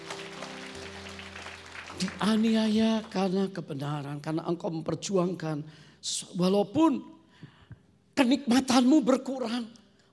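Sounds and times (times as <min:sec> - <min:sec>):
audience applauding: 0:00.0 - 0:03.2
speech: 0:02.0 - 0:07.2, 0:08.2 - 0:09.8.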